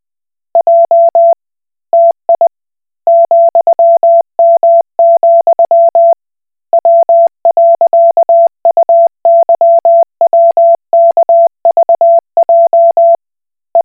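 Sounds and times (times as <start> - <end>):
Koch Morse code beeps: 0.6 - 1.4, 2.0 - 2.5, 3.1 - 6.2, 6.8 - 13.2.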